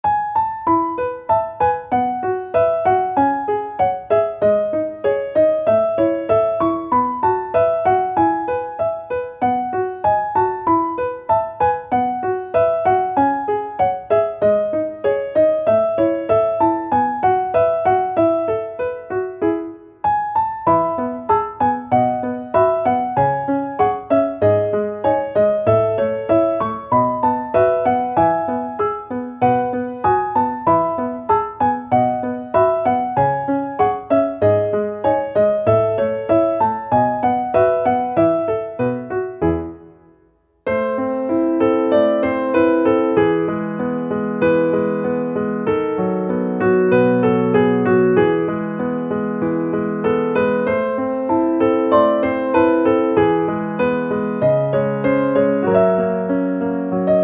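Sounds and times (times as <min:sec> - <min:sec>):
piano: 0:00.0 - 0:57.2.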